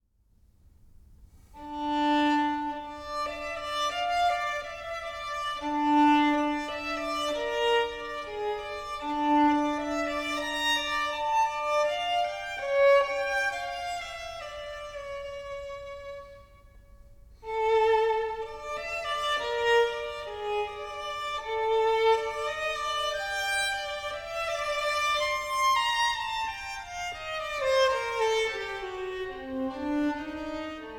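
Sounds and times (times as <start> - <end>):
violin concerto: 1.6 - 30.9.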